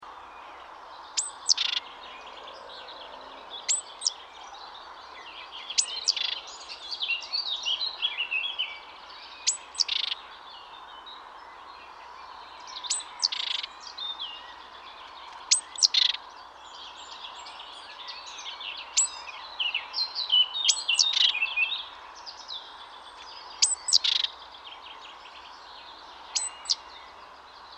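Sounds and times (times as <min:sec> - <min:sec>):
other birds chirping: 0:00.0 - 0:27.7
great tit calls: 0:01.2 - 0:01.8, 0:05.8 - 0:06.4, 0:09.5 - 0:10.2, 0:12.9 - 0:13.7, 0:15.5 - 0:16.2, 0:23.6 - 0:24.4, 0:26.4 - 0:26.8.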